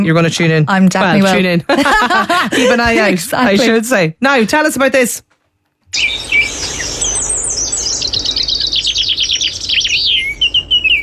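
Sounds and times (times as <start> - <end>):
speech: 0.0 - 5.3, 5.9 - 7.1
laughter: 1.2 - 3.8
birds chirping and singing: 5.9 - 11.0.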